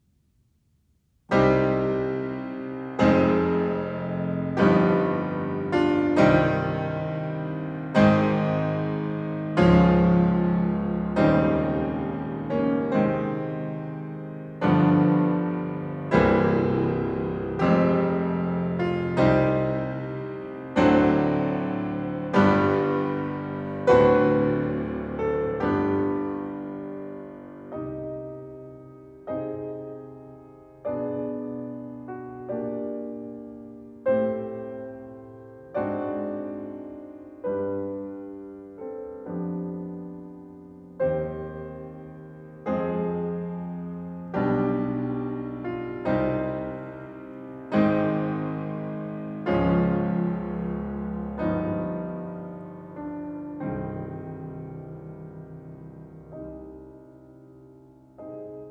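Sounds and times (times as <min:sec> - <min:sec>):
piano prelude in C minor: 0:01.2 - 0:58.7.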